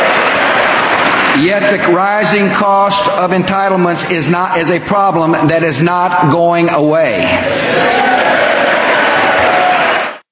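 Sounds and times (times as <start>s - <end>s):
large crowd booing loudly: 0.0s - 1.8s, 7.4s - 10.3s
speech: 1.4s - 8.4s.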